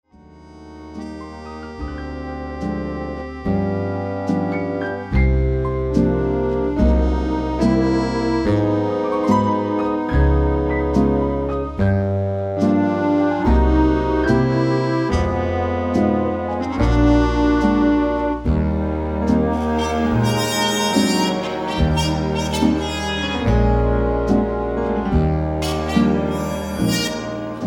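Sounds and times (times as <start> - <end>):
instrumental music: 0.1 - 27.6.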